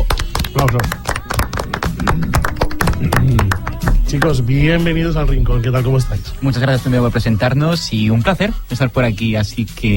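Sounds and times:
audience applause: 0.1 - 4.4
speech: 0.6 - 1.0, 2.0 - 9.9.

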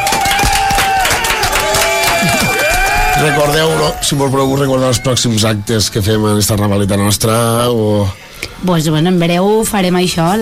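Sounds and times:
audience applause: 0.0 - 4.3
speech: 3.2 - 10.4.

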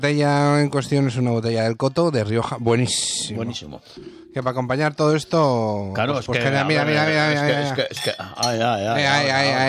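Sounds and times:
speech: 0.0 - 9.6
wine glasses clinking in a studio: 7.4 - 9.2.

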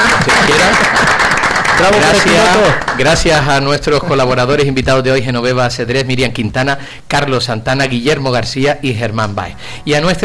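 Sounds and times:
studio audience clapping: 0.0 - 3.6
speech: 1.8 - 10.2.

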